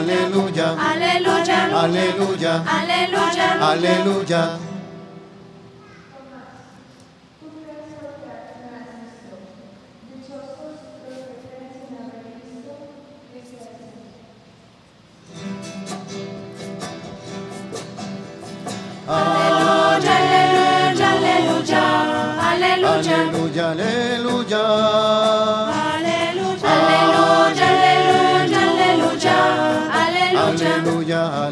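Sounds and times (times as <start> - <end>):
voices singing alleluia: 0.0 - 4.8, 19.0 - 31.4.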